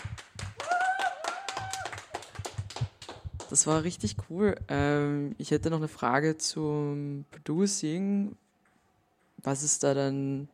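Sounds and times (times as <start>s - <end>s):
audience clapping hands: 0.0s - 3.9s
speech: 3.5s - 8.4s, 9.4s - 10.5s.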